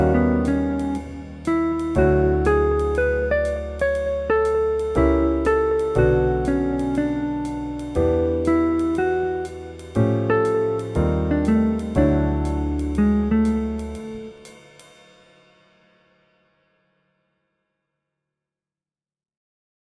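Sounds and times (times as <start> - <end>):
guitar: 0.0 - 14.4.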